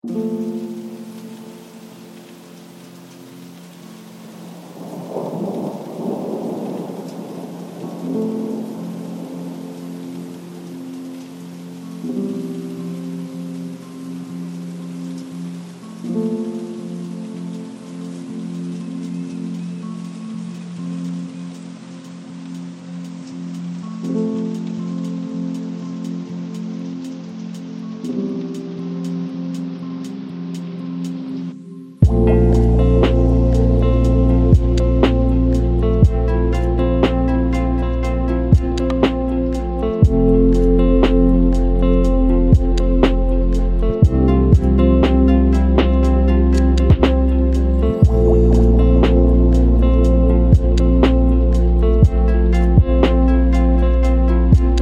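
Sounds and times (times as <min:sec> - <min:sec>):
pouring rain: 0:00.0 - 0:54.8.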